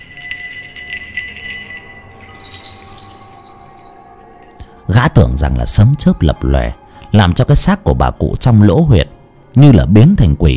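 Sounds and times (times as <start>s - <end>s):
small bells jingling: 0.0s - 5.2s
speech: 4.9s - 10.5s.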